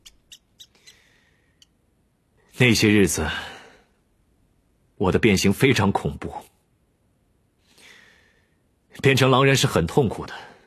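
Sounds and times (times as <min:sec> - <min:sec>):
terrified rat squealing: 0:00.0 - 0:01.0
speech: 0:02.6 - 0:03.5, 0:05.0 - 0:06.5, 0:09.0 - 0:10.5.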